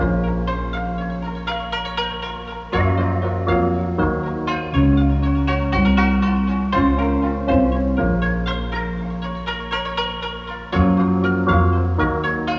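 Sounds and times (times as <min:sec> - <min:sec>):
cassette plucked notes: 0:00.0 - 0:12.5.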